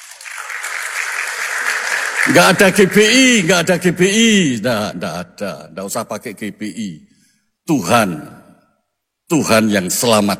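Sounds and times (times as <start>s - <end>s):
audience applause: 0.0s - 3.5s
speech: 2.3s - 7.1s, 7.7s - 8.3s, 9.3s - 10.3s.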